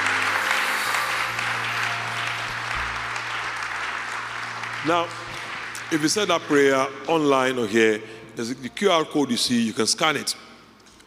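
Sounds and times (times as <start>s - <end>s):
crowd applauding: 0.0s - 7.7s
low sustained organ or keyboard tones: 0.0s - 10.7s
speech: 4.8s - 5.3s, 5.9s - 10.5s.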